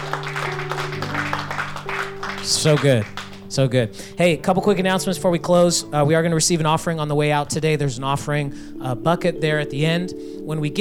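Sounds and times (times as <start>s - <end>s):
crowd clapping: 0.0s - 3.8s
speech: 2.4s - 10.7s.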